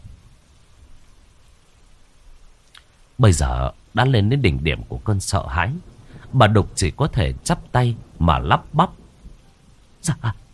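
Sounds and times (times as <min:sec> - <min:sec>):
rain falling: 0:00.0 - 0:10.5
speech: 0:03.2 - 0:09.0, 0:10.0 - 0:10.4
thunder: 0:05.4 - 0:09.5.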